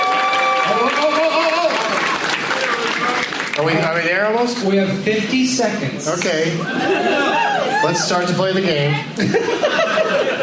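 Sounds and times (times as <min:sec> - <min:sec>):
audience applause: 0:00.0 - 0:04.2
speech: 0:03.6 - 0:09.7
laughter: 0:06.5 - 0:07.9, 0:09.1 - 0:10.4.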